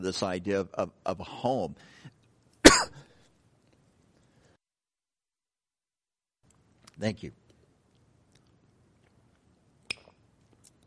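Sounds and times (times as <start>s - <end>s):
speech: 0.0s - 2.1s, 2.7s - 3.0s, 7.0s - 7.4s
person coughing: 2.6s - 3.1s
throat clearing: 2.7s - 3.1s.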